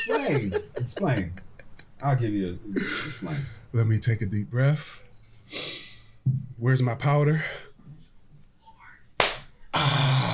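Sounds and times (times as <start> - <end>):
speech: 0.0 - 1.4, 2.0 - 5.7, 6.3 - 7.6
laughter: 0.0 - 2.2
hard hand clap: 9.2 - 9.5.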